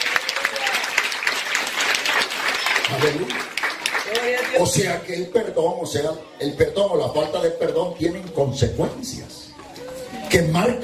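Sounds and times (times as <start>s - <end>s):
congregation applause during a church service: 0.0s - 5.0s
speech: 2.9s - 3.5s, 4.2s - 9.4s, 10.3s - 10.8s.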